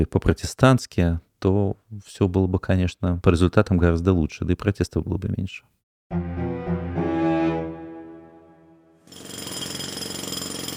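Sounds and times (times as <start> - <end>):
speech: 0.0 - 7.3
jackhammer digging up the pavement: 9.1 - 10.7.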